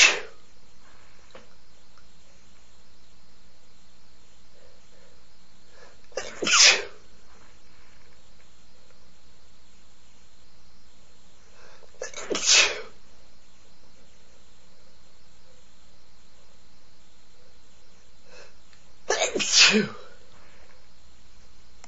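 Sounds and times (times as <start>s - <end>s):
breathy male sneezing: 0.0s - 0.4s, 6.2s - 7.0s, 12.0s - 13.0s, 19.1s - 20.2s.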